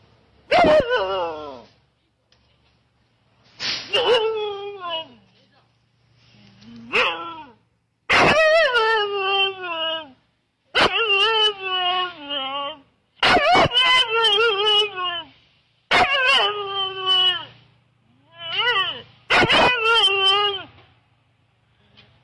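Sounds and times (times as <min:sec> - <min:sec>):
Siberian Husky howling and whining: 0:00.5 - 0:01.7, 0:03.9 - 0:05.2, 0:06.9 - 0:10.2, 0:10.8 - 0:15.3, 0:15.9 - 0:17.6, 0:18.2 - 0:20.8.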